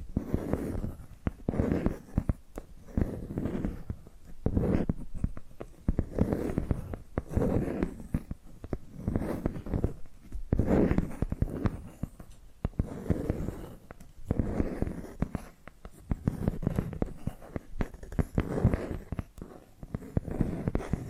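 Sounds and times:
tapping and scratching: 0:00.2 - 0:21.0.

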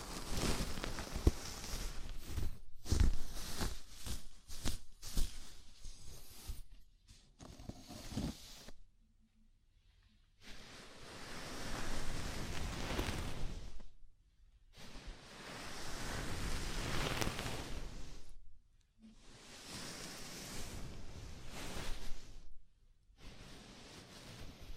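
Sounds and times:
rough hissing scalp massage rubbing: 0:00.0 - 0:06.8, 0:10.4 - 0:13.9, 0:14.8 - 0:18.4, 0:19.3 - 0:24.7.

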